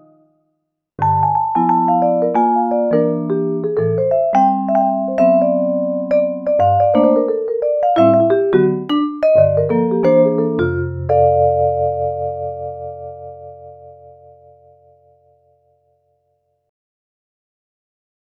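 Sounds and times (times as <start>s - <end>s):
pitched percussion on a Kurzweil PC361 keyboard: 1.0s - 14.6s.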